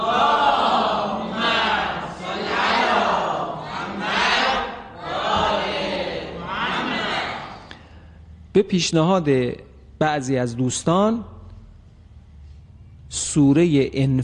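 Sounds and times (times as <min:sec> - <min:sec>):
crowd reciting salawat aloud in unison: 0:00.0 - 0:07.7
speech: 0:08.6 - 0:11.4, 0:13.1 - 0:14.2.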